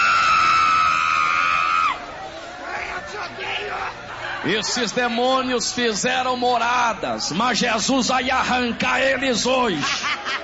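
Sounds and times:
audience shouting loudly together: 0:00.0 - 0:04.6
speech: 0:04.4 - 0:10.4
laughter: 0:09.6 - 0:10.4.

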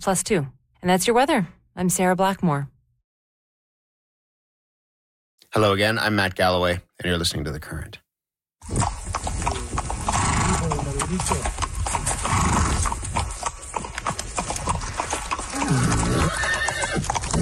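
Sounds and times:
speech: 0:00.0 - 0:02.7, 0:05.5 - 0:08.0, 0:08.6 - 0:09.0, 0:11.1 - 0:11.6
hooves clip-clopping: 0:08.6 - 0:17.4
horse neighing: 0:08.7 - 0:13.8, 0:14.4 - 0:17.4.

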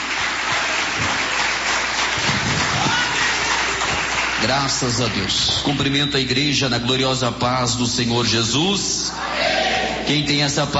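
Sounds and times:
audience applause: 0:00.0 - 0:05.8
speech: 0:04.4 - 0:10.7.

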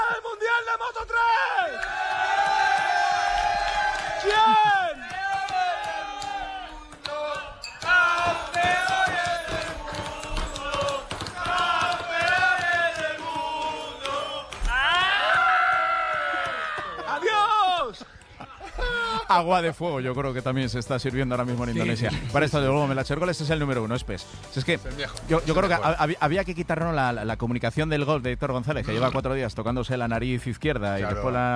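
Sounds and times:
rowdy crowd at a team party cheering and shouting: 0:00.0 - 0:19.4
laughter: 0:16.2 - 0:20.1, 0:21.7 - 0:22.7
speech: 0:19.3 - 0:31.5.

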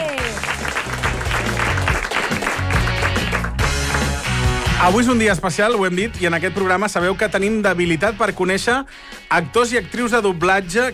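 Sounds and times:
applause: 0:00.0 - 0:04.5
speech: 0:04.8 - 0:10.9.

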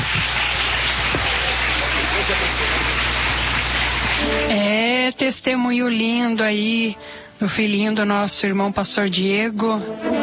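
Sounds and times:
strong applause: 0:00.0 - 0:04.6
speech: 0:05.1 - 0:10.2.

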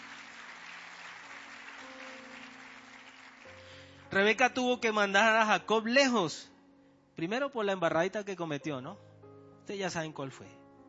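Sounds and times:
audience applause: 0:00.0 - 0:03.8
speech: 0:04.1 - 0:06.5, 0:07.2 - 0:09.1, 0:09.7 - 0:10.6.

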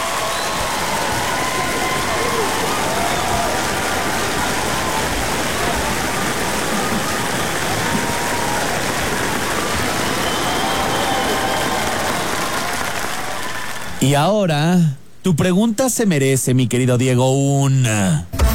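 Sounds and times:
applause: 0:00.0 - 0:14.1
speech: 0:14.0 - 0:18.4.

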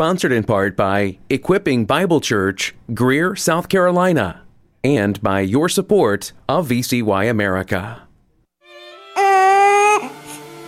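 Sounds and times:
speech: 0:00.0 - 0:08.0
newborn baby crying: 0:09.0 - 0:10.6.

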